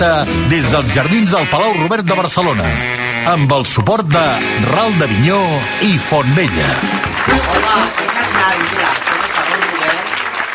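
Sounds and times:
speech: 0:00.0 - 0:09.0
audience applause: 0:06.1 - 0:10.5.

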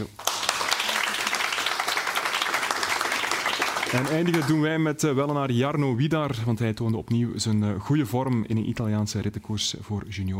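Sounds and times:
audience applause: 0:00.0 - 0:04.7
speech: 0:03.9 - 0:10.3.

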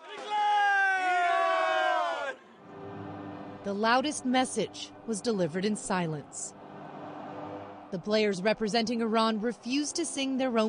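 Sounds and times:
crowd roaring and chanting outside a stadium: 0:00.0 - 0:03.6, 0:06.2 - 0:08.0
speech: 0:03.6 - 0:06.6, 0:07.9 - 0:10.6.

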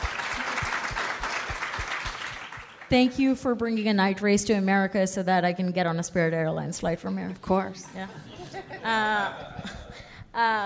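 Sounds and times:
audience applause: 0:00.0 - 0:02.9
speech: 0:02.9 - 0:09.8, 0:10.4 - 0:10.6
laughter: 0:08.0 - 0:10.1.

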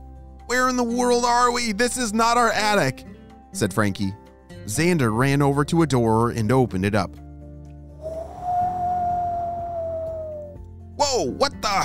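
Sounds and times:
speech: 0:00.5 - 0:07.2, 0:11.2 - 0:11.8
howling wind on a snowy mountaintop: 0:08.0 - 0:10.6.

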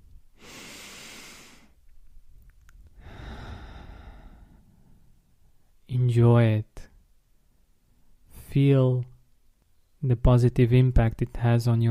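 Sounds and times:
person breathing in deeply: 0:00.4 - 0:01.8, 0:03.0 - 0:05.1
speech: 0:06.0 - 0:06.9, 0:08.5 - 0:09.1, 0:10.0 - 0:11.8.

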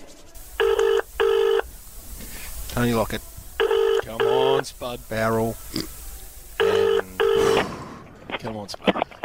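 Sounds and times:
telephone ringing out on the line in a studio: 0:00.6 - 0:01.7, 0:03.6 - 0:04.6, 0:06.6 - 0:07.6
speech: 0:02.8 - 0:03.3, 0:04.6 - 0:06.0, 0:08.4 - 0:09.1.

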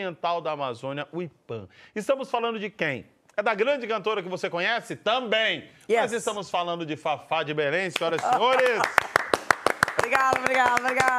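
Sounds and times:
speech: 0:00.0 - 0:09.2, 0:10.1 - 0:11.1
audience clapping in rhythm along with a performance: 0:07.9 - 0:11.1.

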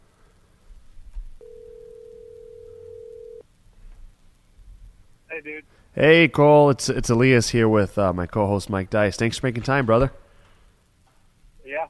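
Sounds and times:
low noise: 0:00.0 - 0:11.8
outgoing phone call ringback tone: 0:01.4 - 0:03.4
speech: 0:05.4 - 0:10.2.

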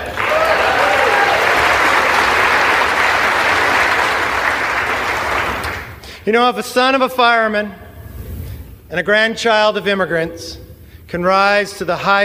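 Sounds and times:
audience applause: 0:00.0 - 0:06.0
speech: 0:06.3 - 0:07.8, 0:08.9 - 0:12.2.

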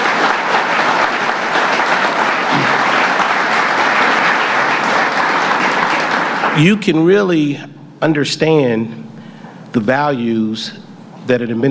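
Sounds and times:
audience applause: 0:00.0 - 0:06.9
speech: 0:06.6 - 0:09.1, 0:09.7 - 0:11.6.

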